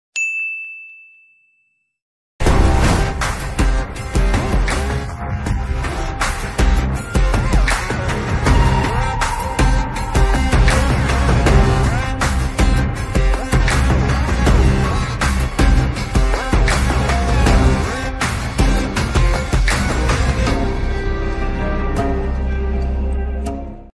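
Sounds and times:
Tamil movie attitude background music: 2.4s - 23.9s.

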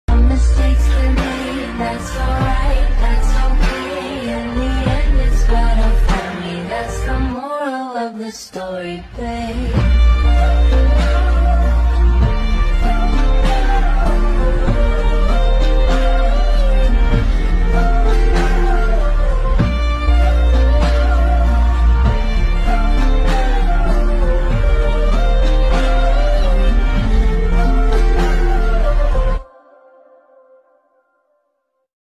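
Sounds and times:
background music mix: 0.0s - 31.5s.

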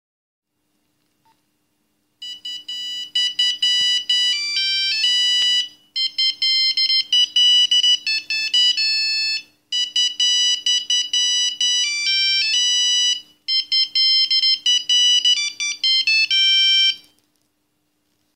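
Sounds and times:
Nokia 3110 Christmas ringtone melody: 2.2s - 17.1s.

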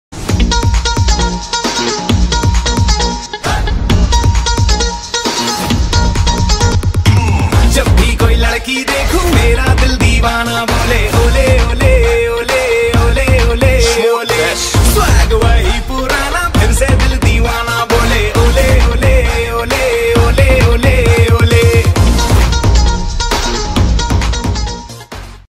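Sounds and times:
ringtone song: 0.4s - 25.4s.

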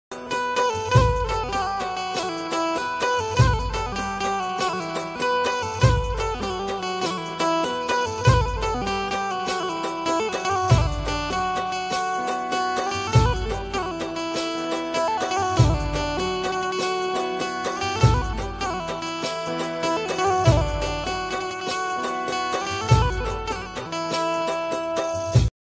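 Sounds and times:
Gujarati love ringtone: 0.1s - 25.5s.

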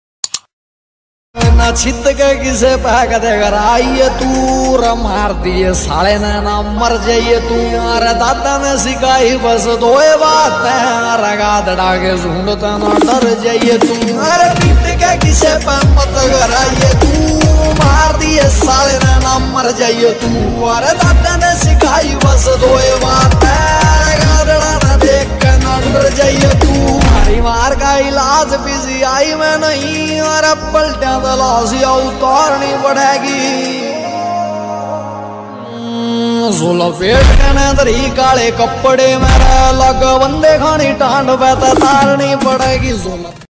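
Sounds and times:
Haryanvi ringtone music: 1.4s - 42.7s.

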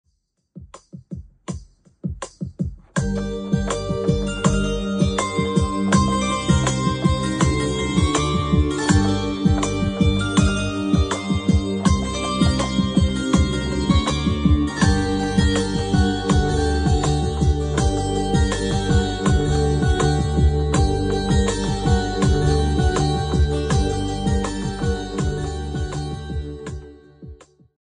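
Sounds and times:
song background music ringtone melody: 3.0s - 27.4s.

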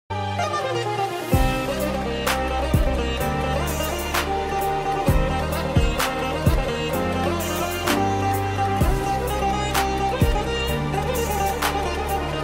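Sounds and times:
veena background music: 0.1s - 12.4s.

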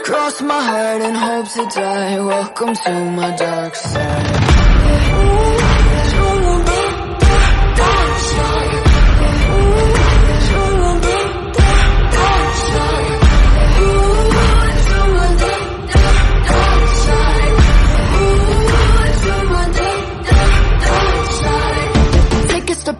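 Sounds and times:
ringtone beat background music: 0.1s - 22.7s.

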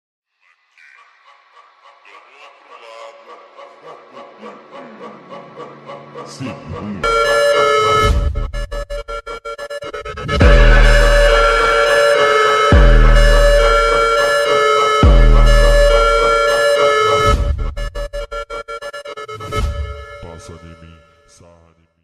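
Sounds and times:
laughter: 0.4s - 7.1s, 10.4s - 15.6s
funk montage beat: 7.0s - 19.1s.

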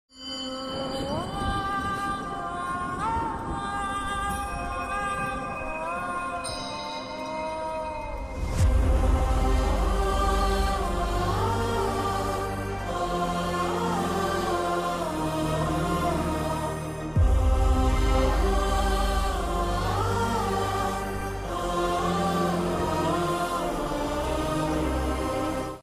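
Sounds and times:
emotional background music: 0.2s - 25.8s.

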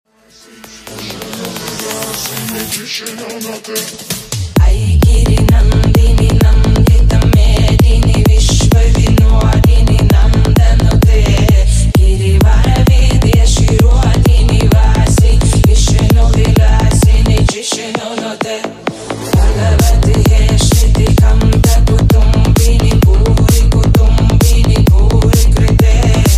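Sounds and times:
bass-boosted trance ringtone remix: 4.6s - 17.5s, 19.0s - 26.3s.

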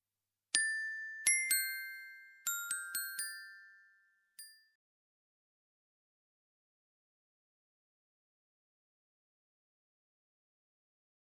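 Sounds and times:
Tamil background music ringtone: 0.6s - 4.8s.

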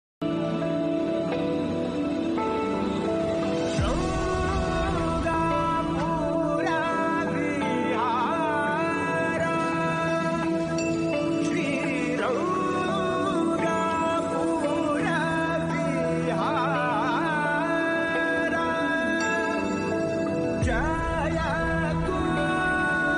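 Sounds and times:
classic background music: 0.0s - 23.1s.

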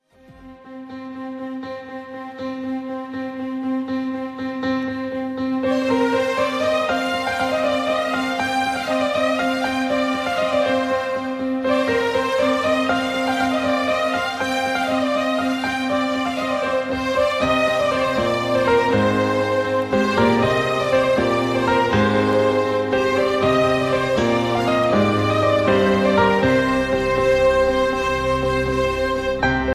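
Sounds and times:
romantic background music: 0.0s - 29.7s.

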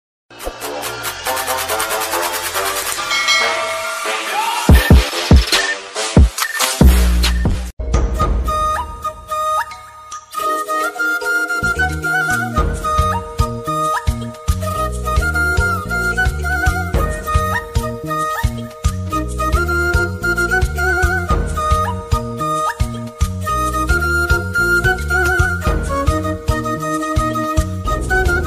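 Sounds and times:
flute background music: 0.5s - 28.4s.

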